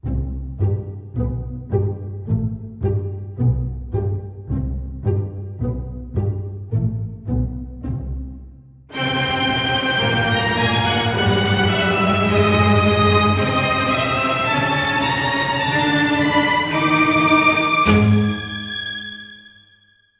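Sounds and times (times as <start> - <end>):
strings: 0.0 - 19.8.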